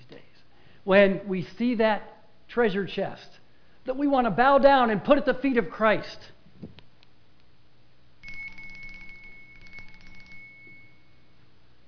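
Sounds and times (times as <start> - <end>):
speech: 0.8 - 6.8
tinkling bell: 8.2 - 11.3.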